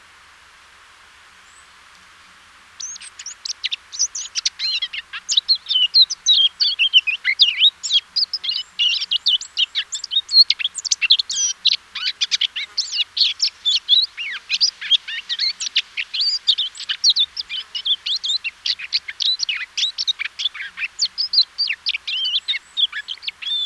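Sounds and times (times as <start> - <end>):
Eurasian blackcap song: 2.8 - 23.6.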